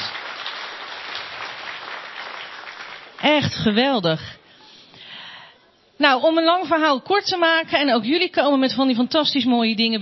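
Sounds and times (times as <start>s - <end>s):
audience applause for children at a church gathering: 0.0s - 3.3s
speech: 3.2s - 4.4s, 6.0s - 10.0s.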